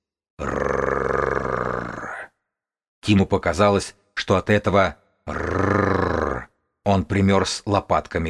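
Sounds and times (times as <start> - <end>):
low throaty creature growl: 0.4 - 2.4, 5.3 - 6.5
speech: 3.1 - 5.5, 6.9 - 8.2.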